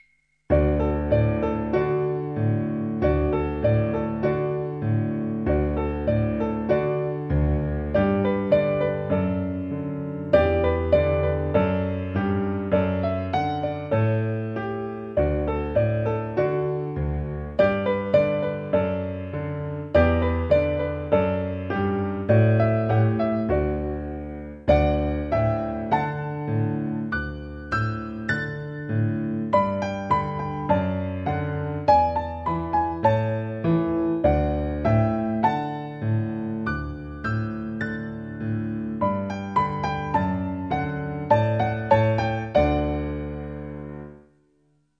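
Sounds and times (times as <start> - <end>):
piano: 0.5 - 44.8.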